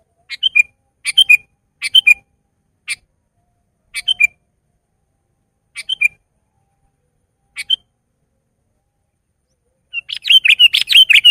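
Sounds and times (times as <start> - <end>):
Sooty-headed bulbul song of short bubbly phrases: 0.0 - 3.2, 3.8 - 4.5, 5.6 - 8.1, 8.8 - 11.2.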